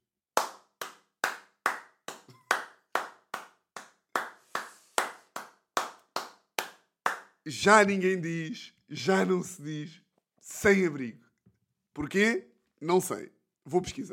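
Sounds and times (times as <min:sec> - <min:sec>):
applause: 0:00.4 - 0:07.4
speech: 0:07.4 - 0:11.2, 0:12.0 - 0:14.1.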